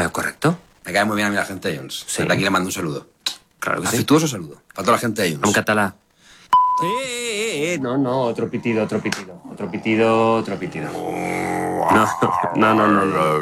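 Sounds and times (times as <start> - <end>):
speech: 0.0 - 6.0, 6.8 - 13.4
mid-pitched censor beep: 6.5 - 7.1
person speaking in a drawn-out sing-song way: 6.8 - 13.4.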